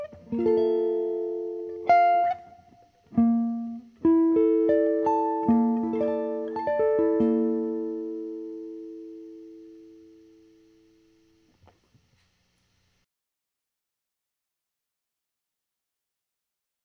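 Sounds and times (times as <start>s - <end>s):
guitars through Amati Amp and Amati Bridge: 0.0s - 11.4s.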